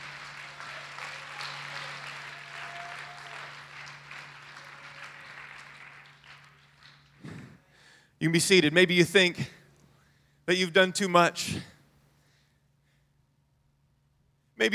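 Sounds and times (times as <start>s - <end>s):
crowd clapping: 0.0s - 7.8s
speech: 8.2s - 9.6s, 10.5s - 11.7s.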